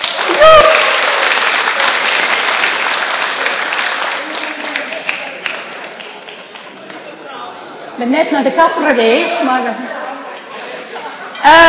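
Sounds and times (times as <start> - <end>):
audience applause: 0.0 - 7.2
brief whoop or cheer: 0.2 - 1.0
speech: 8.0 - 10.0, 11.4 - 11.6.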